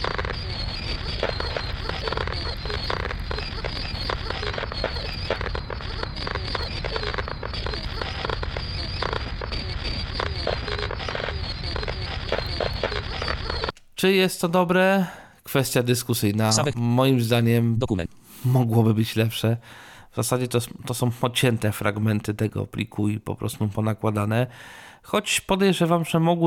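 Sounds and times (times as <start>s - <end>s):
generated fireworks noise: 0.0s - 13.8s
speech: 14.0s - 26.4s.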